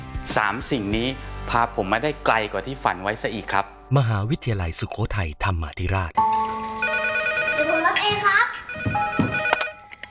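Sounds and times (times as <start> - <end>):
speech: 0.4 - 6.3
telephone ringing with electronic ringtone: 6.5 - 10.0.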